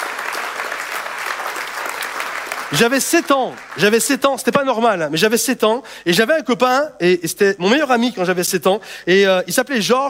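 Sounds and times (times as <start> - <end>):
audience applause: 0.0 - 4.0
speech: 2.7 - 10.0.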